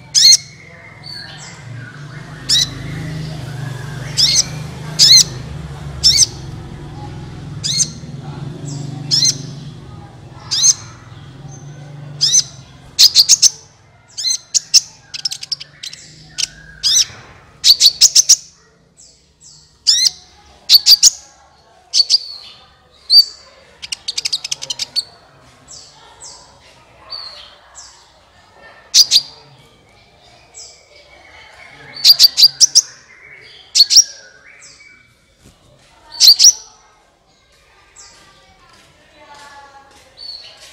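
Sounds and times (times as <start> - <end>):
Van Hasselt's sunbird chirping: 0.0 - 21.2, 21.9 - 26.1, 30.7 - 35.1.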